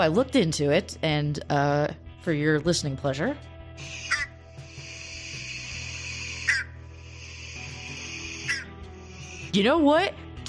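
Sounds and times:
speech: 0.0 - 4.1, 9.5 - 10.2
frog toad-like honking call: 3.8 - 9.5.

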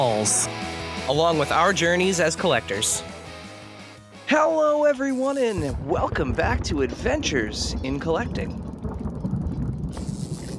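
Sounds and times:
speech: 0.0 - 3.1, 4.3 - 8.6
bubbling cauldron sound effect: 5.6 - 10.5
hiss: 10.0 - 10.5.

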